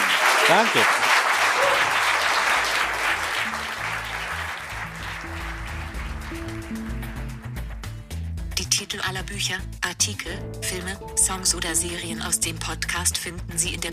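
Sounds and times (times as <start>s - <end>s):
audience applause: 0.0s - 7.8s
speech: 0.5s - 1.8s, 8.9s - 13.9s.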